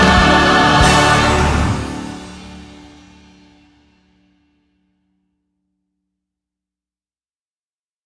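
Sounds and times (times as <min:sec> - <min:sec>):
choir singing: 0:00.0 - 0:03.1.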